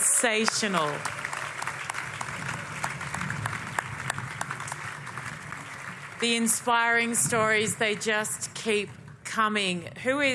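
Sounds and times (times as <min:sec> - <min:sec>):
crowd applause: 0:00.0 - 0:08.7
speech: 0:00.2 - 0:01.2, 0:06.2 - 0:10.3.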